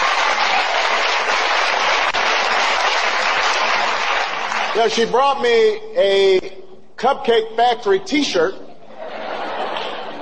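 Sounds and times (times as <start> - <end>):
audience applause: 0.0 - 5.0
speech: 4.8 - 8.6
laughter: 8.6 - 10.2.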